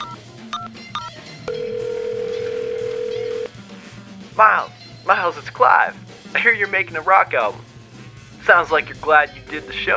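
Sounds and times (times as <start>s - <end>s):
telephone keypad beeps: 0.0s - 3.5s
speech: 4.4s - 7.7s, 8.4s - 9.9s.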